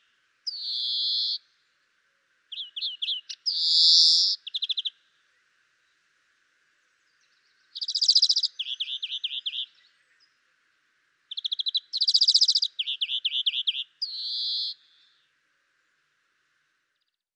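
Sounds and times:
Chloris chloris European greenfinch song of rattling trills: 0:00.5 - 0:01.4, 0:02.5 - 0:04.9, 0:07.6 - 0:09.8, 0:11.3 - 0:14.8.

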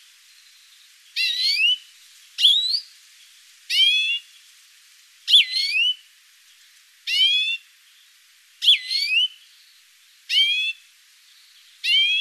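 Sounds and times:
European greenfinch buzzy and curling whistled calls: 0:00.4 - 0:02.9, 0:03.7 - 0:04.3, 0:05.3 - 0:06.0, 0:07.1 - 0:07.6, 0:08.6 - 0:12.2.

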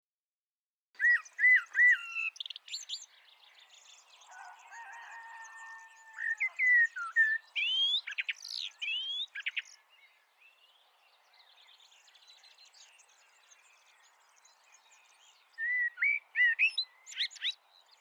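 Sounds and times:
common blackbird Turdus merula giving clear slurred whistled notes: 0:01.0 - 0:02.3, 0:06.4 - 0:09.6, 0:15.6 - 0:17.6.

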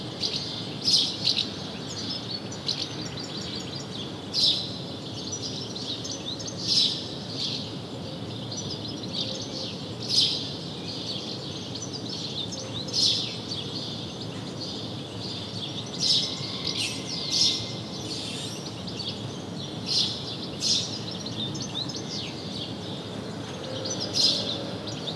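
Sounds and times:
outdoor background noise: 0:00.0 - 0:25.1
house sparrow chirping: 0:15.2 - 0:22.2.

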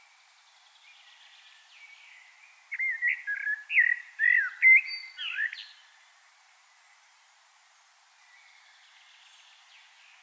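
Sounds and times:
Common blackbird whistling song: 0:01.8 - 0:05.8.

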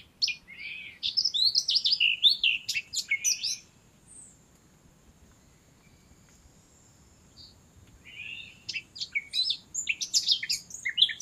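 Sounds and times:
Eurasian blackcap Sylvia atricapilla warbling song: 0:00.0 - 0:04.4, 0:07.3 - 0:11.2.

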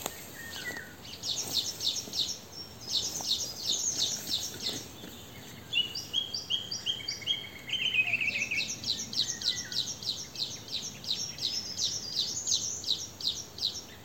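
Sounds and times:
Eurasian wren Troglodytes troglodytes singing: 0:00.0 - 0:14.0.

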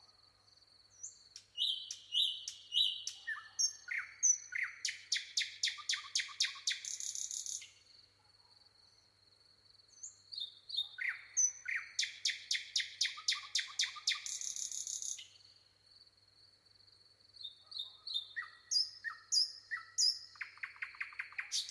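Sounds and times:
common nightingale song: 0:01.0 - 0:07.8, 0:10.0 - 0:15.3, 0:17.4 - 0:21.6.

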